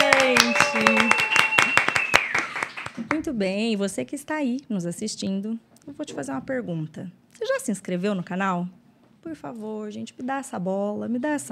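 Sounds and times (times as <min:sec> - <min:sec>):
audience applause from a small group: 0:00.0 - 0:03.2
high whistle-like tone sliding downward: 0:00.4 - 0:02.6
speech: 0:03.2 - 0:11.5.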